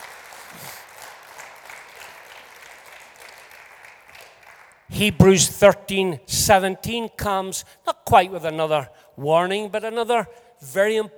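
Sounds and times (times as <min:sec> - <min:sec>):
audience applauding: 0:00.0 - 0:05.4
speech: 0:04.9 - 0:11.1.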